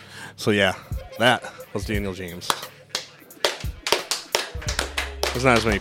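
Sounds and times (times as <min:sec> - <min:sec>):
speech: 0:00.4 - 0:02.6, 0:05.4 - 0:05.7
small group clapping sparsely: 0:02.4 - 0:05.7.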